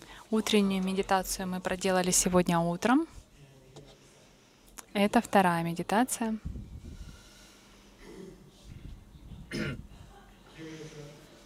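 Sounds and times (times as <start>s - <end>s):
low noise: 0.0s - 11.4s
speech: 0.3s - 3.2s, 5.0s - 6.6s
throat clearing during a guided meditation session: 8.0s - 8.5s, 9.5s - 9.9s.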